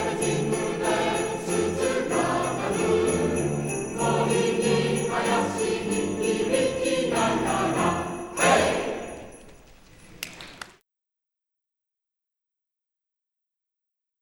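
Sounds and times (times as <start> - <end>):
Christmas song: 0.0 - 10.4.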